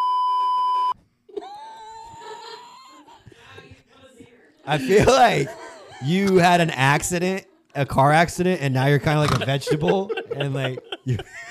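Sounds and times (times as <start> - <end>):
censor bleep: 0.0 - 1.0
laughter: 1.3 - 11.5
speech: 4.7 - 11.5.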